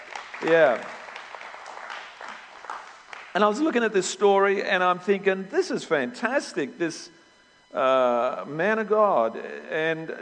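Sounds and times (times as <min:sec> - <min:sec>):
crowd applauding: 0:00.0 - 0:03.7
speech: 0:00.4 - 0:01.0, 0:03.4 - 0:10.1.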